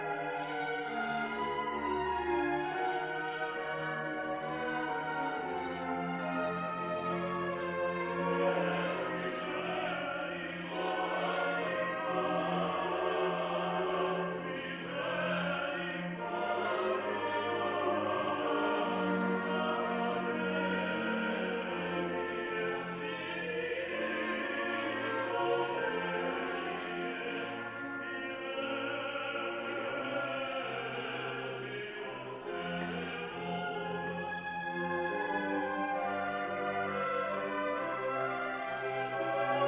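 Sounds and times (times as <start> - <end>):
orchestra playing: 0.0 - 39.6
symphonic choir singing: 0.0 - 39.6.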